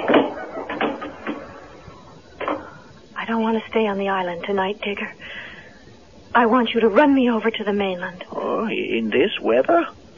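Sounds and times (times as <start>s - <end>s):
door being closed: 0.0s - 2.7s
speech: 3.3s - 5.4s, 6.4s - 10.1s.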